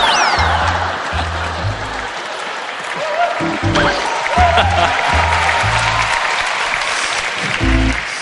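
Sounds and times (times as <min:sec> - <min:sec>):
audience laughter: 0:00.0 - 0:05.6
crowd applause: 0:00.0 - 0:08.2.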